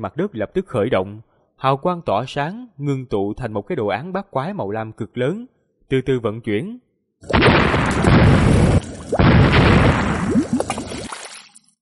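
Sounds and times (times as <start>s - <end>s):
speech: 0.0s - 8.6s
loud explosions of colliding sea whirlpools: 7.2s - 11.1s.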